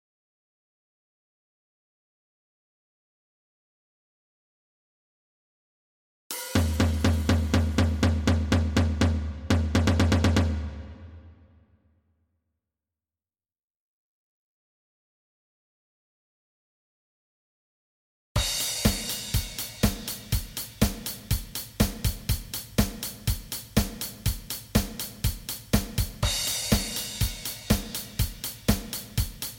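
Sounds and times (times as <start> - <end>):
drums: 6.3 - 11.5, 18.4 - 29.5.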